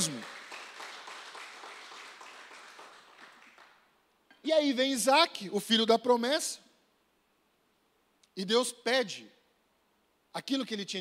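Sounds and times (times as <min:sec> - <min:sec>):
crowd clapping: 0:00.0 - 0:04.0
speech: 0:04.4 - 0:06.6, 0:08.4 - 0:09.4, 0:10.3 - 0:11.0.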